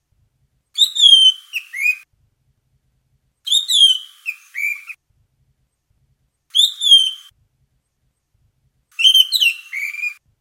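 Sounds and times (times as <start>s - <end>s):
bird two-part harmonic whistled call: 0.8s - 2.0s, 3.5s - 5.0s, 6.5s - 7.3s, 9.0s - 10.2s.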